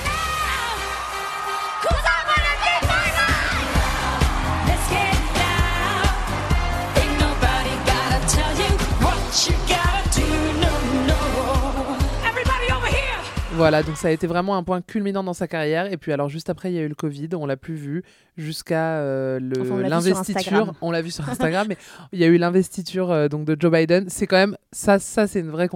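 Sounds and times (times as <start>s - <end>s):
loud live pop music at a Super Bowl halftime show: 0.0s - 13.9s
crowd whooping: 0.2s - 9.2s
speech: 13.6s - 25.7s.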